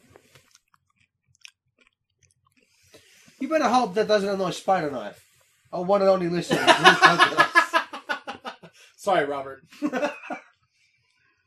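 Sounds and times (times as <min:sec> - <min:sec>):
crunchy chewing of M&M's candy: 0:00.0 - 0:03.0
speech: 0:03.4 - 0:07.5, 0:09.0 - 0:10.3
laughter: 0:06.4 - 0:08.8, 0:09.7 - 0:10.5.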